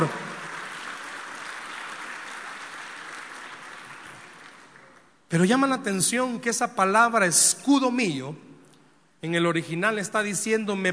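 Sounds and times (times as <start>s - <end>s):
audience applauding: 0.0s - 5.1s
speech: 5.3s - 8.5s, 9.2s - 10.9s.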